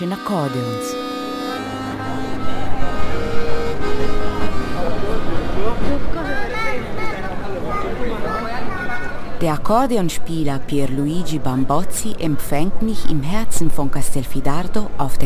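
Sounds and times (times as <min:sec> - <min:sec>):
speech: 0:00.0 - 0:01.1, 0:09.4 - 0:15.2
murmur of many voices on Piazza della Repubblica in Castelfidardo, Italy: 0:00.0 - 0:15.2.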